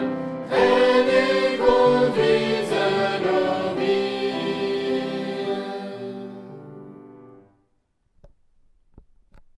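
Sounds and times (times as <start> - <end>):
chanting: 0.5 - 6.6.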